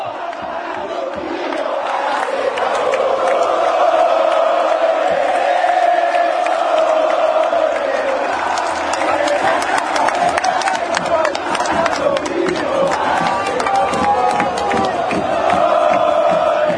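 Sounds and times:
crowd shouts: 0:00.0 - 0:16.7
football fans chanting in unison in stadium: 0:00.0 - 0:16.7.

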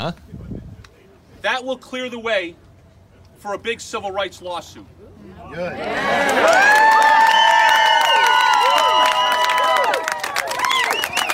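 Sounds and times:
speech: 0:00.0 - 0:00.3, 0:01.4 - 0:02.6, 0:03.4 - 0:07.2
crowd of hundreds cheering: 0:05.5 - 0:11.3
scattered clapping: 0:06.2 - 0:11.3.

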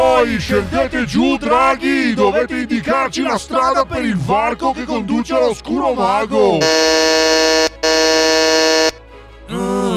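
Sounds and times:
speech: 0:00.2 - 0:07.2, 0:09.5 - 0:09.9
intercom buzzer ringing: 0:06.6 - 0:09.0.

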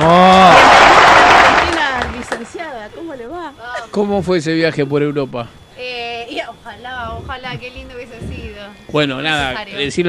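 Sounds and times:
applause and ovation: 0:00.0 - 0:02.5
speech: 0:04.0 - 0:06.0, 0:06.6 - 0:10.0.

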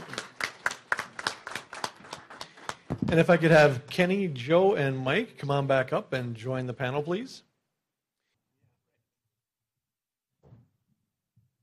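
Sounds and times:
audience applause: 0:00.0 - 0:03.5
speech: 0:03.1 - 0:07.5.

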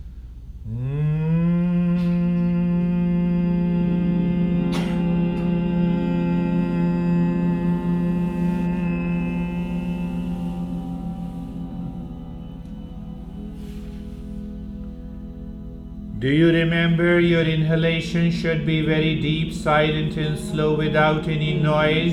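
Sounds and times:
deep closed-lip humming: 0:00.0 - 0:22.1
speech: 0:16.3 - 0:22.1.

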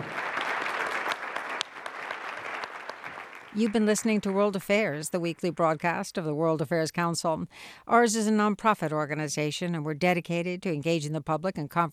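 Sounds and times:
audience applause: 0:00.0 - 0:04.4
speech: 0:03.6 - 0:11.9.

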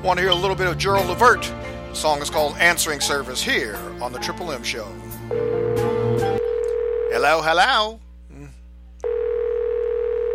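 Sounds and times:
speech: 0:00.0 - 0:06.3, 0:07.1 - 0:08.6
telephone ringing: 0:05.3 - 0:07.3, 0:09.0 - 0:10.3.

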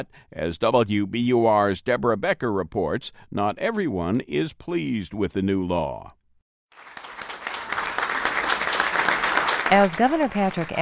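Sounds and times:
speech: 0:00.0 - 0:06.2, 0:09.7 - 0:10.8
applause from a gathered crowd: 0:06.8 - 0:10.8.

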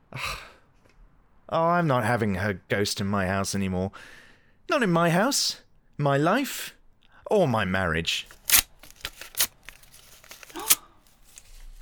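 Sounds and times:
speech: 0:01.5 - 0:08.4
paper being torn up: 0:08.3 - 0:11.5.

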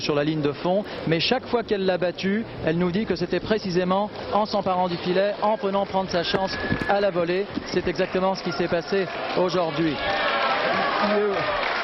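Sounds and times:
speech: 0:00.0 - 0:10.4, 0:11.0 - 0:11.8
crowd applause: 0:05.8 - 0:11.8.

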